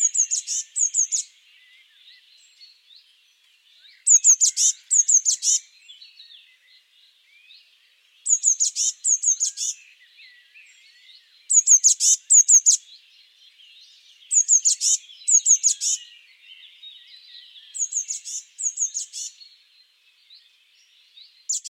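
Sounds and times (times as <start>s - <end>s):
Eurasian blue tit calling: 0.0s - 1.3s, 4.0s - 5.7s, 8.2s - 9.8s, 11.5s - 12.9s, 14.3s - 16.1s, 17.7s - 19.4s, 21.5s - 21.6s
other birds chirping: 0.0s - 21.6s.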